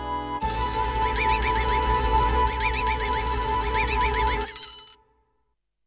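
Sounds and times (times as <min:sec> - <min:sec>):
recorder playing ghostly: 0:00.4 - 0:04.8.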